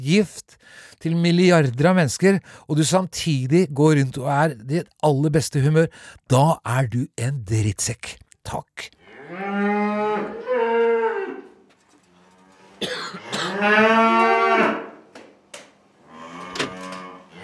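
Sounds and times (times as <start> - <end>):
speech: 0.0 - 10.3, 13.6 - 14.1
cows mooing: 9.0 - 11.6, 12.2 - 15.0, 16.0 - 17.4.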